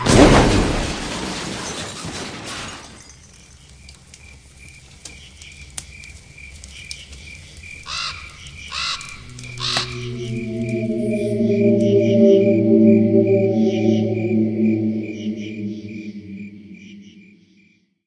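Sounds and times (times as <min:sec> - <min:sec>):
opening score: 0:09.4 - 0:17.1.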